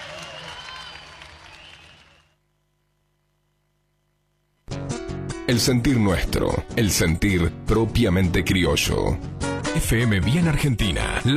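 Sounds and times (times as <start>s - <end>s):
audience applause: 0.0s - 2.4s
speech: 5.5s - 11.3s.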